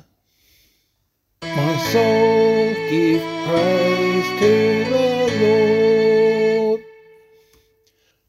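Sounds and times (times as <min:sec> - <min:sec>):
vocal psalm singing: 0:01.4 - 0:07.6.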